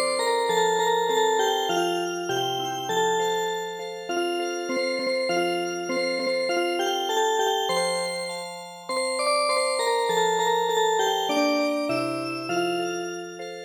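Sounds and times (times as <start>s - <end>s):
toy music box playing a march: 0.1s - 13.6s.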